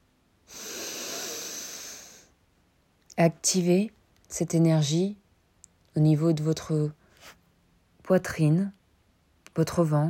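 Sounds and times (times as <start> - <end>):
slow inhalation during a guided French breathing and energy exercise: 0.5 - 2.4
speech: 3.2 - 5.2, 6.0 - 7.4, 8.1 - 8.8, 9.6 - 10.0.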